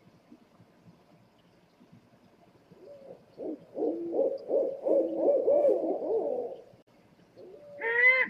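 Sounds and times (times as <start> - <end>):
scops owl hooting: 2.8 - 6.6, 7.4 - 8.2.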